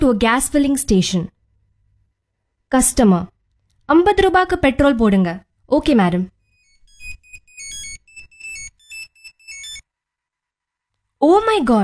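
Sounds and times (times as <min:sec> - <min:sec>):
speech: 0:00.0 - 0:01.4, 0:02.7 - 0:03.3, 0:03.9 - 0:06.4, 0:11.2 - 0:11.8
mobile phone ringtone: 0:06.4 - 0:09.8.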